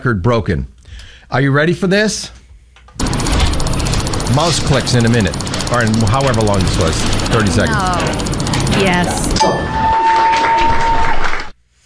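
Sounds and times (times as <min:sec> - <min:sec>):
speech: 0:00.0 - 0:02.4, 0:04.3 - 0:09.6
audience clapping after a mouse-click world record: 0:03.2 - 0:11.6.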